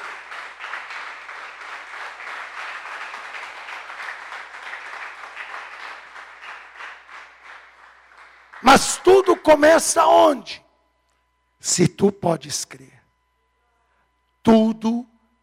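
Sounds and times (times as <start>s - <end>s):
audience applause: 0.0s - 9.4s
speech: 8.6s - 10.6s, 11.7s - 13.0s, 14.5s - 15.1s.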